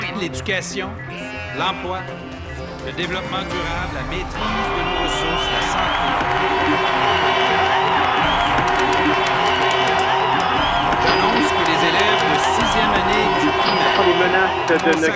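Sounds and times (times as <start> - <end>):
speech: 0.2 - 7.5, 12.6 - 15.1
thousands of students cheering and chanting: 3.5 - 15.1.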